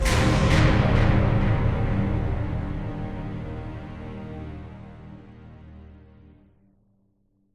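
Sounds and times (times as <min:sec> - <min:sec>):
combat end music stinger: 0:00.0 - 0:06.4.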